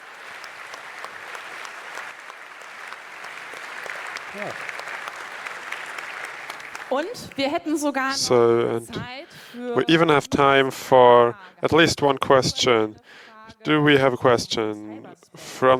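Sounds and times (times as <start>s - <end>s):
audience applause: 0.0s - 8.4s
speech: 4.4s - 4.8s, 6.9s - 15.7s.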